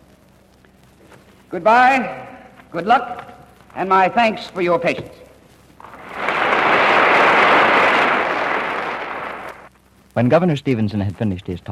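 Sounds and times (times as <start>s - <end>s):
speech: 1.5s - 5.2s, 10.2s - 11.6s
applause of the overflow audience in Huff Gymnasium: 5.8s - 9.7s.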